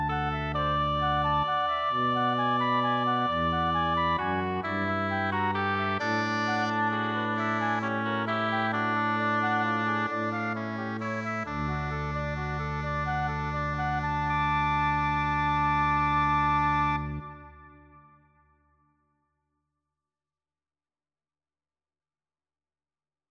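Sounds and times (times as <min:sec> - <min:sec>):
organ chorale: 0:00.1 - 0:17.8.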